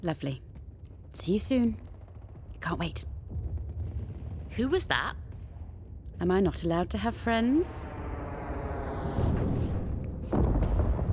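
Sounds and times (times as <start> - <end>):
speech: 0.0 - 0.5, 1.2 - 1.9, 2.6 - 3.1, 4.5 - 5.2, 6.2 - 8.0
explosion: 3.3 - 4.7, 7.8 - 11.1.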